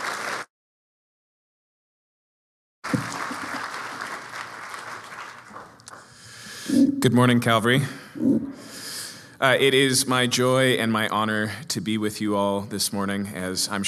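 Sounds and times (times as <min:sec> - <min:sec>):
church audience applause welcoming a pastor at a Missions Sunday service: 0:00.0 - 0:00.5, 0:02.8 - 0:06.2
speech: 0:07.0 - 0:08.5, 0:09.4 - 0:13.8.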